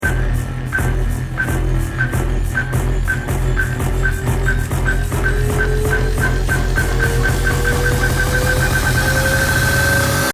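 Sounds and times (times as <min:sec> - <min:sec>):
ten second bomb timer countdown: 0:00.0 - 0:10.3.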